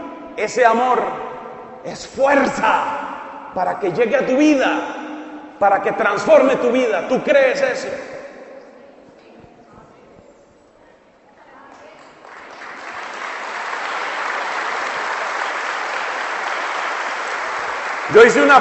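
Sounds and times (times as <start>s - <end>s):
speech: 0.4s - 3.0s, 3.6s - 5.0s, 5.6s - 8.1s, 18.1s - 18.5s
audience applause: 12.1s - 18.5s.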